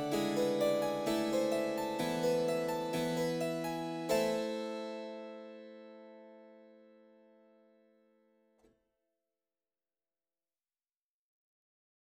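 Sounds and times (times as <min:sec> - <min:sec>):
harpsichord concerto: 0:00.0 - 0:05.7.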